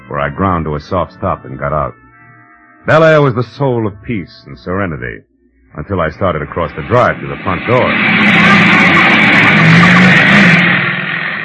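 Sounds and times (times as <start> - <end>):
speech: 0.1 - 2.1, 2.8 - 9.1
motorcycle roaring past: 6.9 - 11.4.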